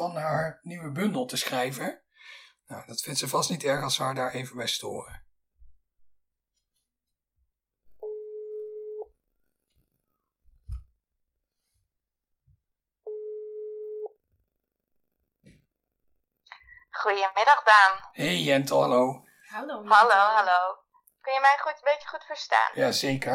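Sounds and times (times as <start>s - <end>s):
speech: 0.0s - 5.2s, 17.0s - 23.3s
telephone ringing tone while calling: 8.0s - 9.1s, 13.1s - 14.2s.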